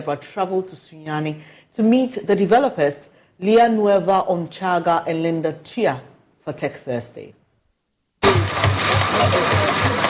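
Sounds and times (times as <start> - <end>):
speech: 0.0 - 7.4, 9.2 - 10.0
pedal-powered bicycle water filter machine on a metal platform whirring as pedaled: 8.2 - 10.0.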